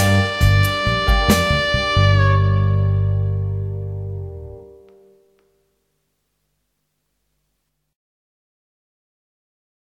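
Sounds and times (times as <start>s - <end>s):
saxophone: 0.0s - 5.5s.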